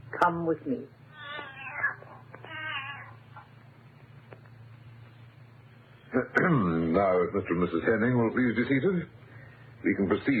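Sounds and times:
speech: 0.2 - 1.0, 6.1 - 9.2, 9.8 - 10.3
cat meowing: 1.1 - 3.5.

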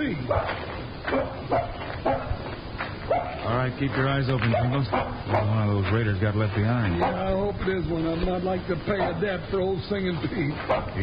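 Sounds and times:
constant hiss: 0.0 - 11.0
speech: 0.1 - 1.8, 3.5 - 11.0
dog barking: 0.3 - 2.4, 3.1 - 3.5, 4.4 - 5.6, 7.0 - 7.3, 8.9 - 9.3, 10.6 - 11.0.

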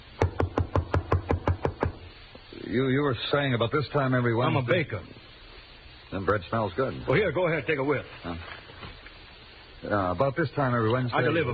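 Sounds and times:
knocking on a door: 0.2 - 2.0
speech: 2.7 - 5.2, 6.1 - 8.6, 9.8 - 11.5.

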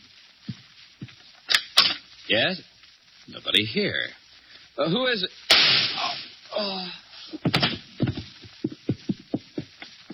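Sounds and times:
speech: 2.3 - 2.7, 3.4 - 4.2, 4.8 - 5.4, 6.6 - 7.6
gunshot in a radio drama: 5.5 - 6.3
dull thuds: 7.4 - 10.1.

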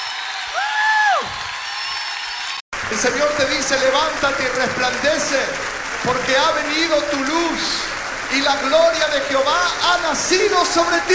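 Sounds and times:
person whooping: 0.0 - 1.5
audience applauding loudly: 0.0 - 11.1
speech: 2.9 - 11.1.

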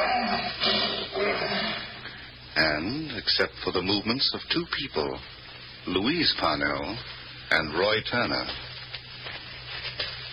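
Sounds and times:
untrained lion roaring at night: 0.0 - 2.0
speech: 2.6 - 8.7.

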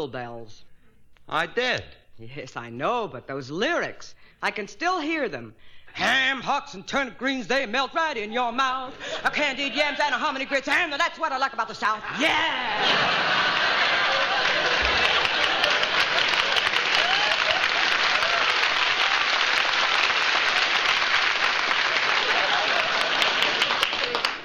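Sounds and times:
speech: 0.0 - 0.7, 1.3 - 13.4
laughter: 8.9 - 10.9, 12.0 - 19.3, 21.5 - 24.4
studio audience applause: 12.7 - 24.4.

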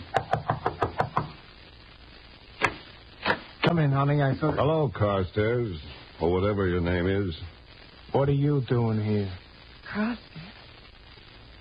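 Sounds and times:
knocking on a door: 0.1 - 1.3
speech: 3.7 - 10.5.

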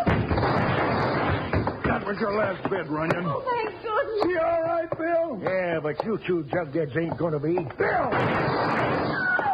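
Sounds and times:
gunshot in a western radio drama: 0.1 - 1.7, 8.1 - 9.3
speech: 2.1 - 9.4.

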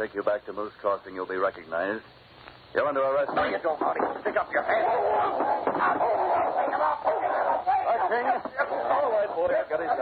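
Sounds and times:
speech: 0.0 - 9.9
dog barking and snarling ferociously: 4.8 - 8.1.

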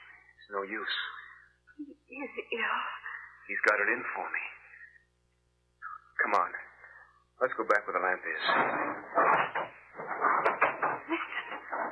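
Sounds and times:
speech: 0.5 - 1.2, 1.8 - 4.6, 6.2 - 6.6, 7.4 - 10.3
heavy furniture scraping and bumping as a door is barricaded: 8.4 - 11.9.

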